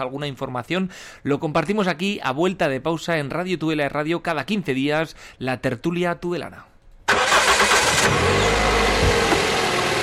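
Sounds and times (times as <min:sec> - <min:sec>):
speech: 0:00.0 - 0:06.7
car engine starting: 0:07.1 - 0:10.0.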